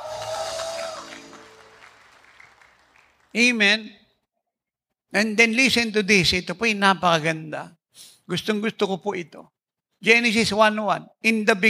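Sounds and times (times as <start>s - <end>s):
audience shouting: 0.0s - 2.1s
audience clapping: 0.0s - 3.6s
speech: 3.3s - 4.0s, 5.1s - 11.6s.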